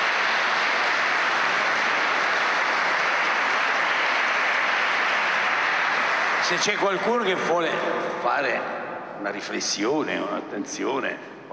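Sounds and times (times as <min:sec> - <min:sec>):
audience applause: 0:00.0 - 0:07.8
speech: 0:06.5 - 0:11.5.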